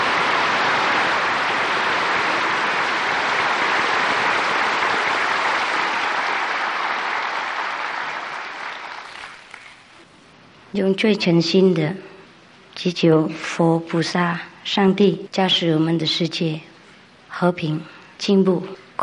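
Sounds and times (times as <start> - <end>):
large audience applause welcoming a speaker: 0.0 - 9.9
speech: 10.8 - 12.1, 12.8 - 16.7, 17.4 - 19.0.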